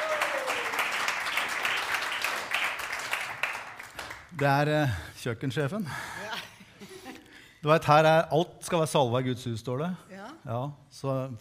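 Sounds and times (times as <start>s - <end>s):
audience applause: 0.0s - 4.5s
speech: 4.4s - 6.1s, 7.6s - 11.4s.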